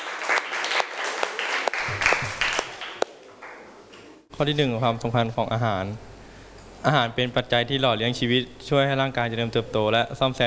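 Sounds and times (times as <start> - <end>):
students applauding: 0.0 - 3.7
speech: 4.4 - 6.1, 6.8 - 10.4.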